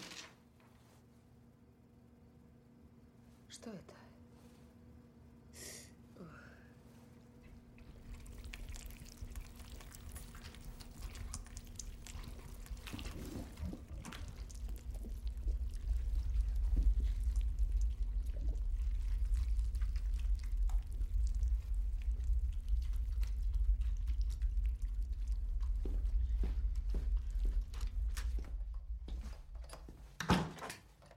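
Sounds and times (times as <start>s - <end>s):
faint constant hum: 0.3s - 31.1s
water leaking behind washing machine: 7.8s - 26.0s.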